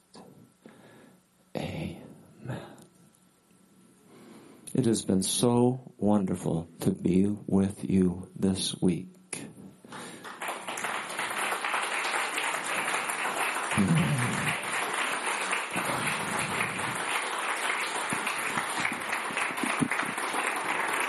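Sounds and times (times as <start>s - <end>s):
speech: 4.7s - 9.2s
audience clapping in praise: 9.9s - 21.0s.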